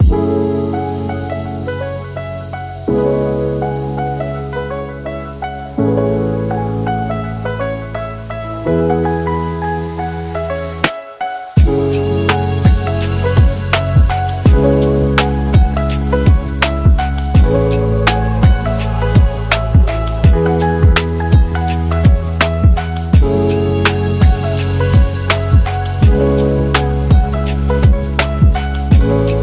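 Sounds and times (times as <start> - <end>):
upbeat lo-fi music: 0.0 - 29.4.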